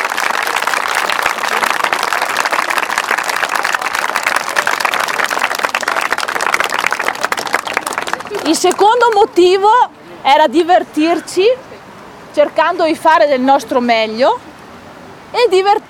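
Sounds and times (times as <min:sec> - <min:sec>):
audience applause: 0:00.0 - 0:09.4
speech: 0:08.5 - 0:11.7, 0:12.4 - 0:14.5, 0:15.3 - 0:15.8.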